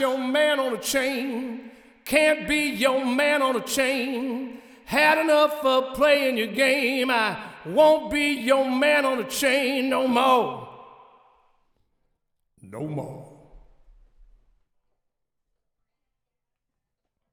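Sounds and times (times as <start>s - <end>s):
male vocals mix: 0.0s - 11.1s, 12.6s - 13.6s.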